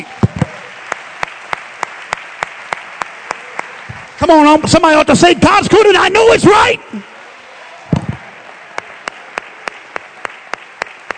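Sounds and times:
audience clapping hands in a steady beat: 0.0s - 4.9s, 8.0s - 11.1s
speech: 4.2s - 7.1s.

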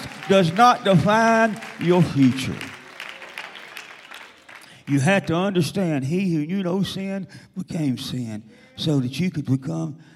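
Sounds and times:
audience applauding: 0.0s - 5.6s
speech: 0.3s - 2.7s, 4.9s - 10.1s.

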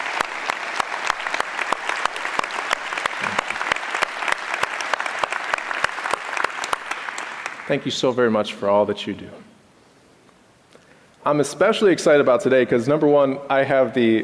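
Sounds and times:
audience round of applause: 0.0s - 7.9s
speech: 7.7s - 9.4s, 11.2s - 14.2s.

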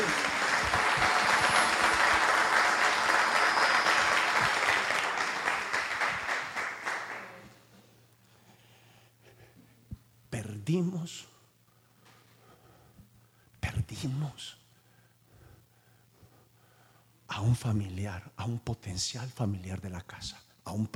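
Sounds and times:
audience applause: 0.0s - 7.6s
speech: 10.7s - 11.3s, 14.0s - 14.6s, 17.4s - 20.9s.

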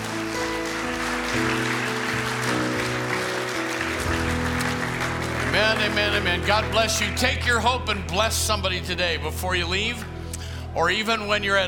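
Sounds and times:
audience clapping: 0.0s - 7.2s
sustained organ or keyboard chords: 0.0s - 11.6s
speech: 1.3s - 1.6s, 5.6s - 10.1s, 10.8s - 11.6s.

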